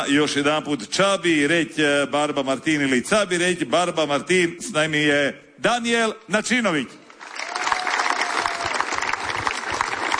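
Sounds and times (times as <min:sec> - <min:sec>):
speech: 0:00.0 - 0:07.0
audience applause welcoming a performer onto the stage: 0:07.1 - 0:10.1.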